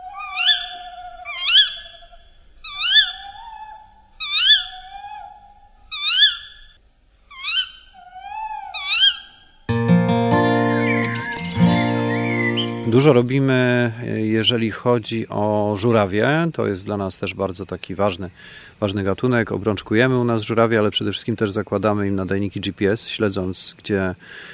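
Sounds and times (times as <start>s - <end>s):
tawny owl calling: 0.0s - 9.6s, 10.7s - 13.2s
music: 9.7s - 13.2s
speech: 13.0s - 24.5s.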